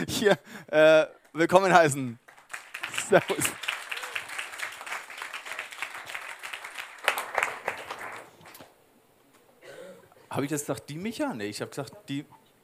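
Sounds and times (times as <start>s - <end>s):
speech: 0.1s - 2.2s, 3.1s - 3.6s, 10.3s - 12.4s
applause: 2.2s - 8.7s.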